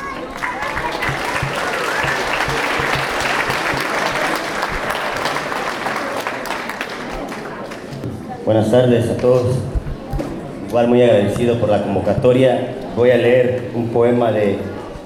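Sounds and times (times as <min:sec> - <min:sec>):
audience applause: 0:00.0 - 0:08.0
speech: 0:08.5 - 0:09.8, 0:10.7 - 0:14.7.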